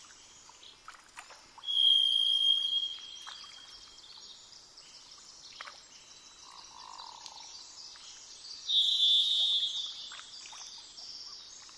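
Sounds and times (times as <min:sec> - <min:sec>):
varied thrush buzzy whistle: 0:01.7 - 0:03.0, 0:08.8 - 0:09.8.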